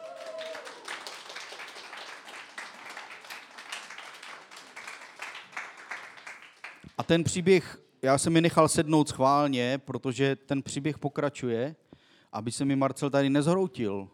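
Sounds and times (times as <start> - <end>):
audience clapping: 0.0 - 7.4
speech: 7.0 - 14.1.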